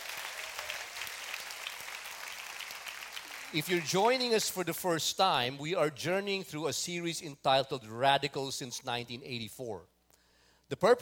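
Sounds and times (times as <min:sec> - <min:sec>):
audience clapping: 0:00.0 - 0:04.3
speech: 0:03.5 - 0:09.9, 0:10.7 - 0:11.0.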